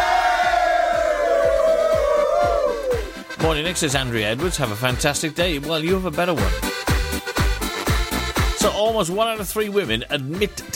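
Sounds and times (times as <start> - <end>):
crowd cheering: 0.0 - 3.2
low thumping beat: 0.0 - 10.6
speech: 3.4 - 6.8, 8.6 - 10.7.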